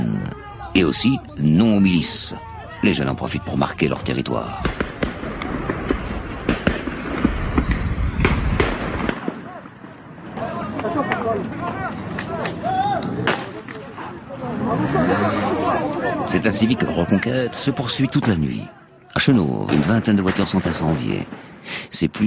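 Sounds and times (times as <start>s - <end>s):
voices shouting: 0.0s - 6.7s, 7.5s - 21.4s
speech: 0.8s - 4.8s, 16.4s - 22.2s
gunshots from pistols, shotguns and Kalashnikovs: 4.3s - 21.6s.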